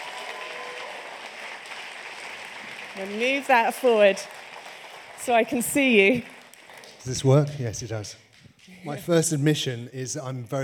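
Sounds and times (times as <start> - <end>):
audience applause: 0.0 - 8.1
speech: 3.0 - 4.4, 5.2 - 6.3, 7.0 - 10.6.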